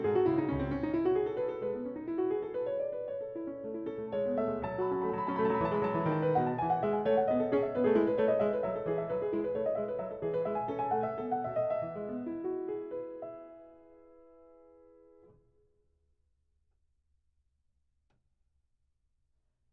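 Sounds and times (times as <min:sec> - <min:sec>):
baroque keyboard courante: 0:00.0 - 0:14.8.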